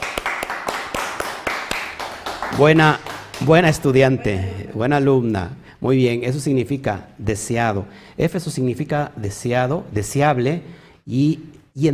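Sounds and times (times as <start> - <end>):
audience applause: 0.0 - 3.7
speech: 2.5 - 11.9.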